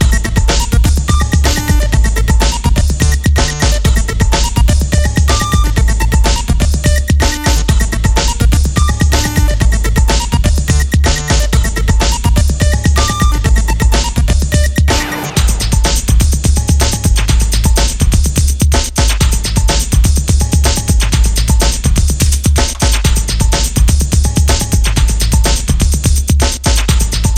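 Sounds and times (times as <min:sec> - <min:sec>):
techno music: 0:00.0 - 0:27.3.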